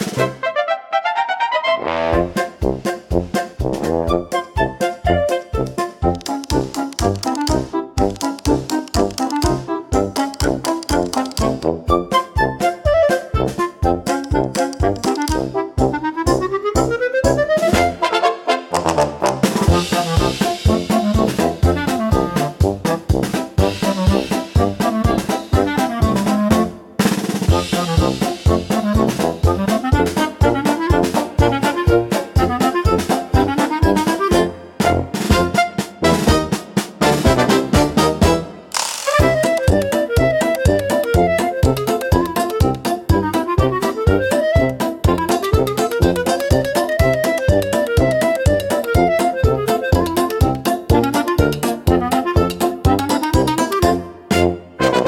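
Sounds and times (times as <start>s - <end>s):
AI parade wind band playing a march: 0.0s - 55.0s.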